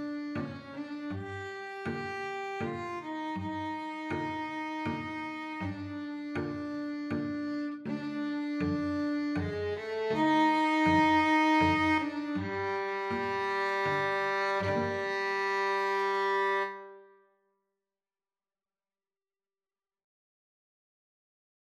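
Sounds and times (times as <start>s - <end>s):
violin and cello duet: 0.0s - 17.0s.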